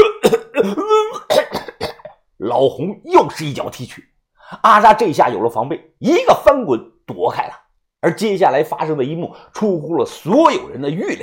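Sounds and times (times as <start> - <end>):
voice imitating a fit of coughing: 0.0 - 2.2
speech: 2.6 - 11.2.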